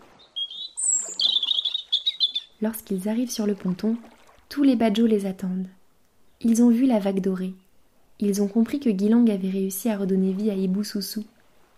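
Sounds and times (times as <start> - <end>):
bird singing loudly on the edge of a dugout canoe: 0.2 - 2.6
speech: 2.6 - 5.8, 6.4 - 7.6, 8.2 - 11.3.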